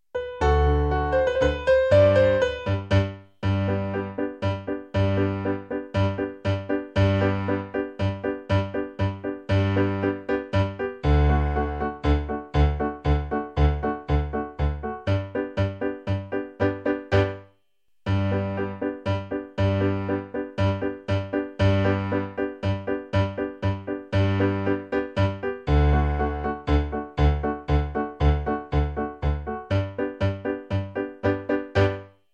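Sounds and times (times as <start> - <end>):
Aragonese popular tune on piano: 0.1 - 17.5, 18.1 - 32.2.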